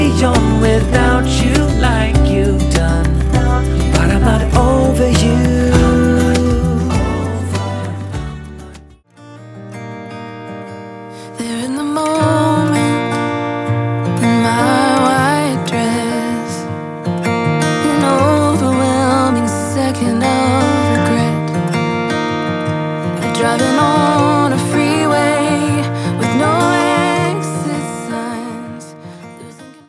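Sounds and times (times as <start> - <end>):
E note on acoustic guitar: 0.0 - 29.8.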